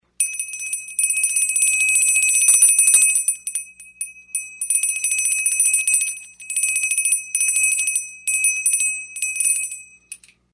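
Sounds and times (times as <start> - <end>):
jingle: 0.2 - 10.3.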